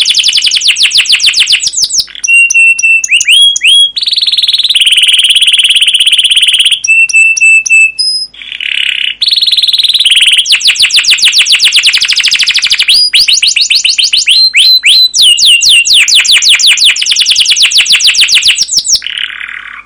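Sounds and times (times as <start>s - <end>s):
canary song: 0.0s - 19.8s.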